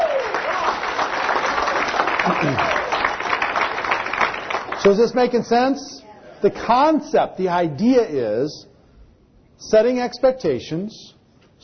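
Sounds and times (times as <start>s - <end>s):
audience applause: 0.0s - 5.0s
speech: 2.3s - 2.8s, 4.8s - 8.7s, 9.6s - 11.6s.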